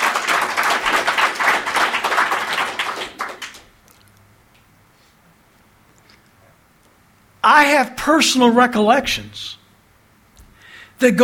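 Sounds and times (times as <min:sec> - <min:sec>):
audience clapping: 0:00.0 - 0:03.8
speech: 0:07.5 - 0:09.6, 0:11.0 - 0:11.2.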